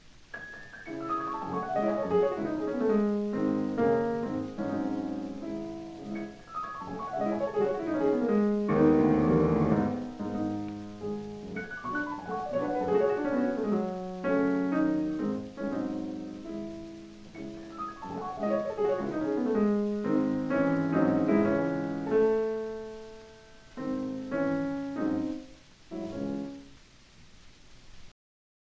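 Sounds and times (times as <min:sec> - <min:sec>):
classical prelude in C-sharp minor: 0:00.4 - 0:26.7.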